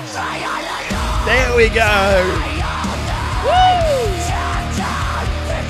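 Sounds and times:
speech: 0.2s - 4.1s
crowd screaming and yelling: 1.0s - 5.6s.

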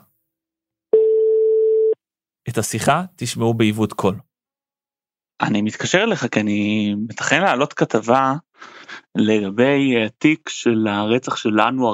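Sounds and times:
ringback tone on an outgoing phone call: 0.9s - 2.0s
speech: 2.6s - 4.3s, 5.4s - 11.9s.

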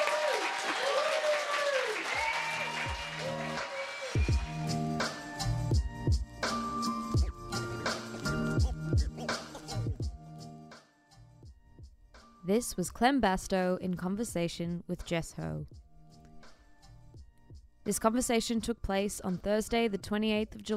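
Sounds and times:
audience applause: 0.0s - 4.7s
music with swooping tones and thumping low beat: 4.2s - 12.3s, 15.7s - 18.0s
speech: 12.5s - 15.8s, 17.9s - 20.7s.

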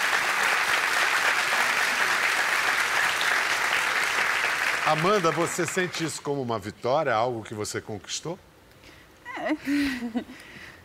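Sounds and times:
applause: 0.0s - 6.3s
speech: 4.9s - 8.5s, 9.4s - 10.6s.

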